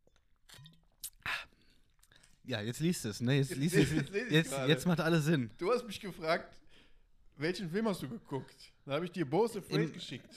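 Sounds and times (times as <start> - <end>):
person sipping a drink: 0.0 - 2.5
speech: 2.4 - 6.6, 7.4 - 10.3.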